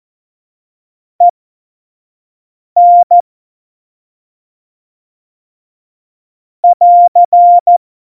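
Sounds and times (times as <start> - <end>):
morse code beeps: 2.8 - 3.2, 6.6 - 7.8.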